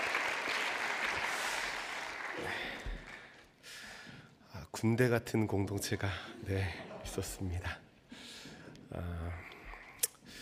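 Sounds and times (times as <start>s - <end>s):
audience applause: 0.0s - 3.5s
speech: 4.8s - 7.8s, 8.9s - 9.5s.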